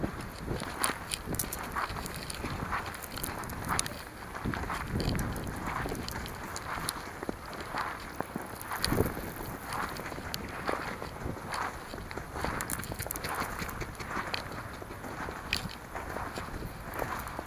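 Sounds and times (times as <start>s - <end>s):
footsteps in snow: 0.0s - 17.4s.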